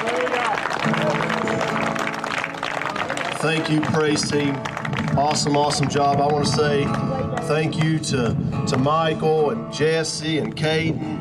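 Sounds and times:
audience clapping: 0.0s - 8.0s
speech: 3.4s - 11.2s.

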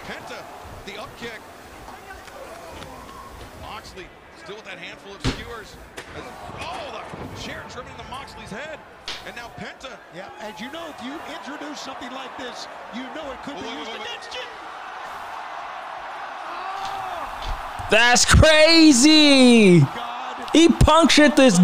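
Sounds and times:
large stadium crowd roaring and shouting at a wrestling match: 0.0s - 21.6s
speech: 0.9s - 1.6s, 4.0s - 14.6s, 17.9s - 21.6s.

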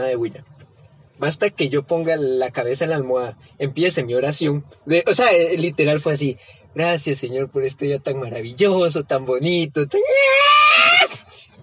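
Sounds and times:
speech: 0.0s - 0.6s, 1.2s - 11.2s
cats yowling: 10.0s - 11.1s.

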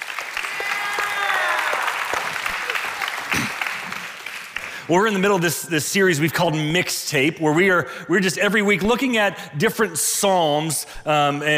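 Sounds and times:
church congregation clapping during a service: 0.0s - 5.4s
speech: 4.9s - 11.5s.

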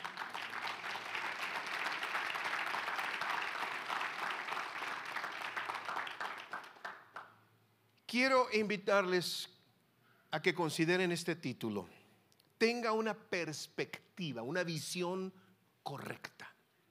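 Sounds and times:
audience applause: 0.0s - 7.3s
speech: 8.1s - 9.5s, 10.3s - 12.0s, 12.6s - 16.4s.

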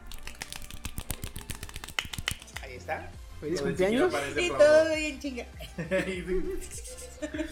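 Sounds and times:
squirrel applause sound effect: 0.0s - 2.8s
speech: 2.8s - 7.5s
laughter: 5.6s - 7.5s.

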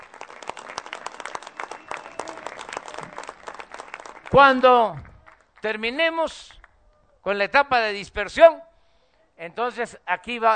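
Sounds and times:
audience applause: 0.0s - 5.6s
speech: 4.3s - 6.6s, 7.2s - 8.7s, 9.4s - 10.5s.

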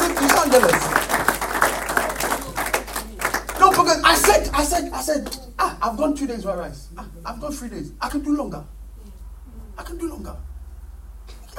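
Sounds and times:
hand clapping: 0.0s - 4.5s, 5.2s - 5.4s
speech: 0.5s - 1.0s, 5.0s - 8.8s, 9.8s - 10.5s.

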